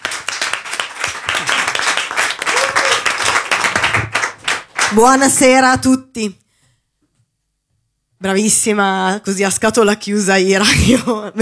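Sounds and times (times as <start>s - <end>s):
audience applause: 0.0s - 5.0s
speech: 5.0s - 6.4s, 8.2s - 11.4s.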